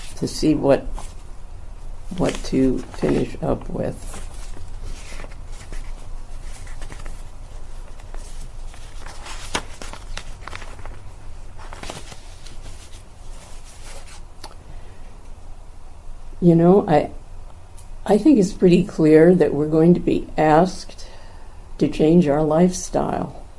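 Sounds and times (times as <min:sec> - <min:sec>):
speech: 0:00.2 - 0:01.2, 0:02.1 - 0:04.3, 0:16.4 - 0:17.2, 0:18.1 - 0:21.0, 0:21.8 - 0:23.4
papers being shuffled: 0:02.1 - 0:14.3.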